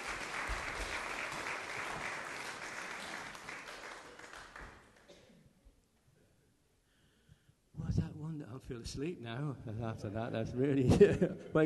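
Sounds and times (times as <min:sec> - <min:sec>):
audience applauding: 0:00.0 - 0:05.1
speech: 0:08.3 - 0:11.6.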